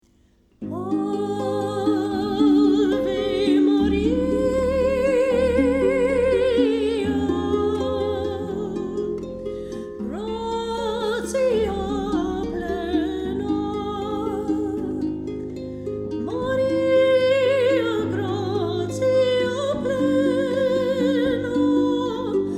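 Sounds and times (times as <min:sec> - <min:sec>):
harp: 0:00.0 - 0:22.5
person singing: 0:00.6 - 0:22.5.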